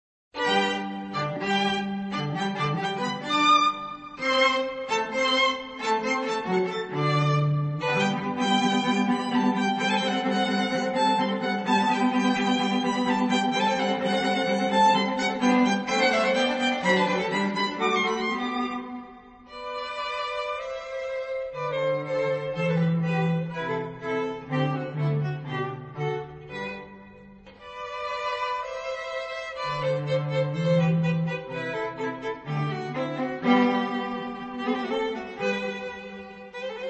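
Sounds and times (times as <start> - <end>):
string trio playing: 0.4 - 36.8.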